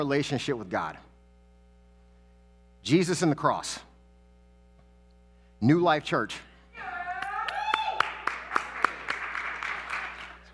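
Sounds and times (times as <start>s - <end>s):
speech: 0.0s - 1.1s, 2.8s - 3.9s, 5.6s - 6.5s
audience clapping: 7.1s - 10.5s.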